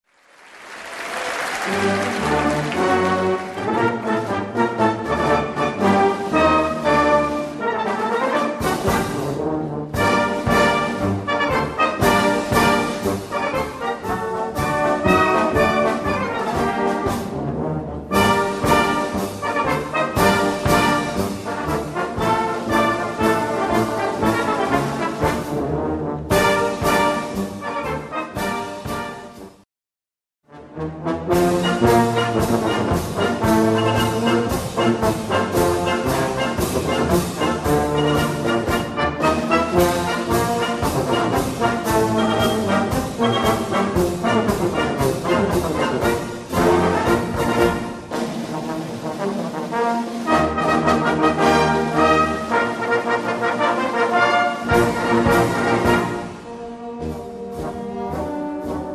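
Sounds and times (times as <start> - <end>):
march music: 0.1 - 29.6, 30.5 - 58.9.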